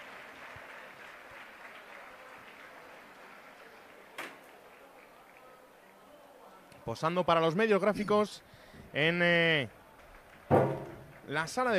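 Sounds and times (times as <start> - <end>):
fans' ovation applause: 0.0 - 6.2, 9.6 - 11.7
speech: 6.9 - 9.8, 11.3 - 11.7
sharp knock or bang: 10.5 - 11.1.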